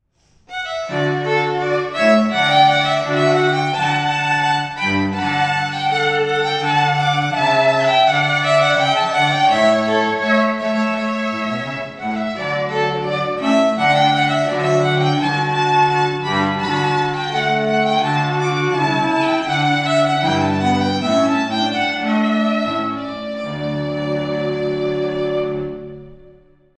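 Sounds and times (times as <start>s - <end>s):
strings: 0.5s - 26.7s.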